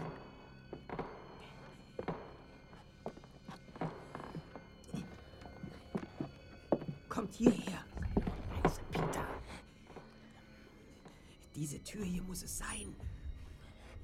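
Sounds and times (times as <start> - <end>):
quiet sneaking footsteps climbing stairs: 0.0 - 11.4
speech: 7.2 - 7.9, 11.6 - 13.2.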